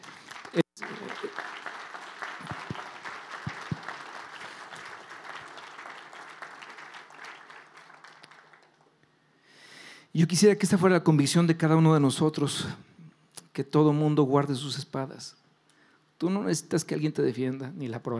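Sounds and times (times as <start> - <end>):
audience applauding: 0.0 - 9.0
speech: 10.2 - 12.9, 13.6 - 15.4, 16.2 - 18.1.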